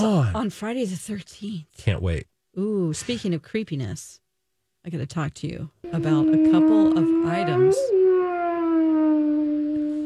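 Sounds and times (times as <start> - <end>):
speech: 0.0 - 4.2, 4.8 - 8.0
ghost yowling sound effect: 5.9 - 10.0.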